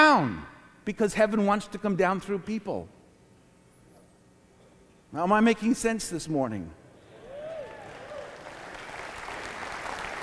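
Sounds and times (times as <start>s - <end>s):
speech: 0.2s - 3.0s, 5.1s - 6.8s
person cheering: 7.2s - 8.4s
audience applause: 7.3s - 10.2s.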